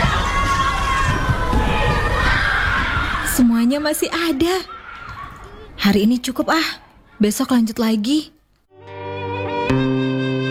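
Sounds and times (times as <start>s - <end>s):
children playing outdoors: 0.0s - 8.2s
speech: 3.8s - 4.8s, 5.8s - 8.4s, 9.7s - 10.4s.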